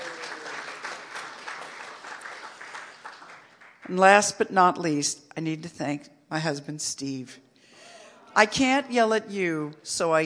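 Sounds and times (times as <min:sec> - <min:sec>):
crowd applauding: 0:00.0 - 0:03.9
speech: 0:03.9 - 0:07.4, 0:08.4 - 0:10.2.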